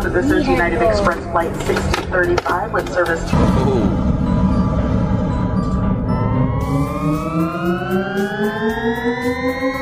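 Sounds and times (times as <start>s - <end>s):
speech: 0.2s - 4.2s, 7.4s - 9.8s
spaceship sound effect: 3.3s - 9.8s.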